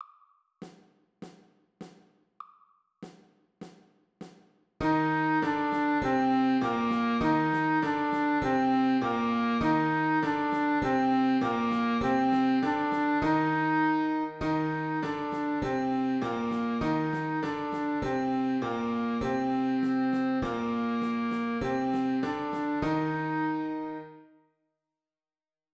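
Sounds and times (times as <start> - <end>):
march music: 4.8 - 24.2.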